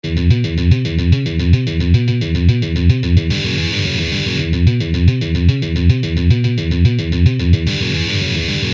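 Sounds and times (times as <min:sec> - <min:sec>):
musical lick: 0:00.0 - 0:08.7.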